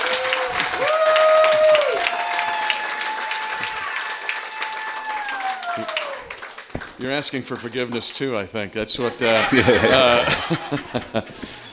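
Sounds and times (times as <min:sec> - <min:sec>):
crowd clapping: 0:00.0 - 0:08.3
speech: 0:07.0 - 0:11.6
laughter: 0:08.9 - 0:11.7.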